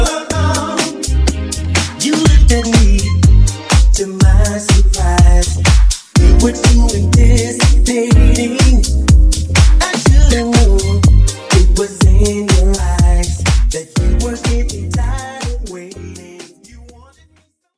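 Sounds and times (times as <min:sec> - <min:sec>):
funk drum loop at 123 bpm: 0:00.0 - 0:17.2.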